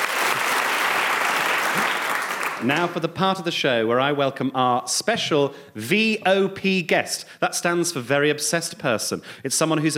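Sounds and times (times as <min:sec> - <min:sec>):
audience applause at a show: 0:00.0 - 0:02.9
speech: 0:02.6 - 0:09.9.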